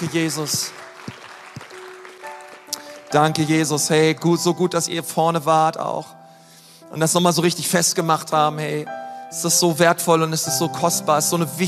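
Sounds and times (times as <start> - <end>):
speech: 0.0 - 1.2, 3.1 - 6.2, 6.9 - 11.6
audience applauding: 0.0 - 3.9.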